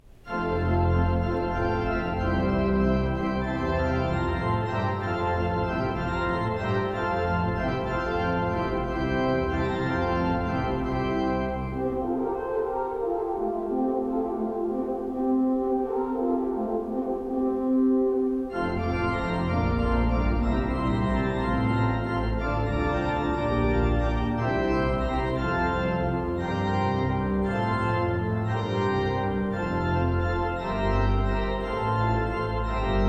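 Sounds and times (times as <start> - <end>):
fast lively classical piece: 0.3 - 17.7, 18.5 - 33.0.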